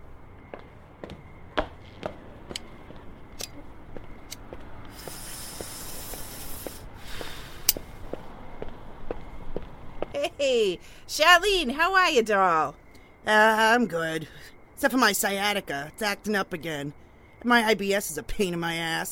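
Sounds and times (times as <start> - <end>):
footsteps of someone walking away: 0.0 - 10.2
brief hiss: 4.9 - 7.8
speech: 10.4 - 19.1.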